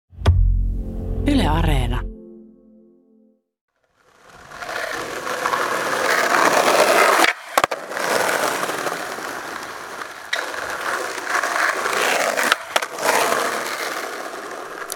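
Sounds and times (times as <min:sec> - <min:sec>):
speech: 0:01.2 - 0:02.1
skateboard rolling and grinding over pavement: 0:03.8 - 0:14.9.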